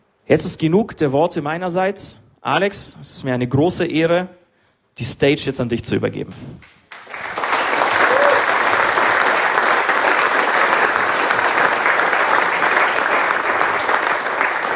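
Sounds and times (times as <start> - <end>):
speech: 0.3 - 4.4, 5.0 - 6.8
audience applause: 6.9 - 14.7.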